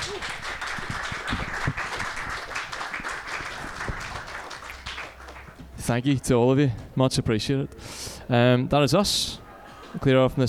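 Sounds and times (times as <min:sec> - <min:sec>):
audience applause: 0:00.0 - 0:05.6
speech: 0:05.9 - 0:10.4.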